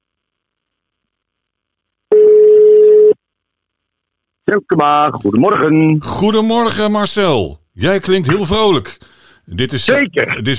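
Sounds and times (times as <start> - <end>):
telephone ringback tone during outgoing call: 2.1 - 3.2
speech: 4.5 - 10.5.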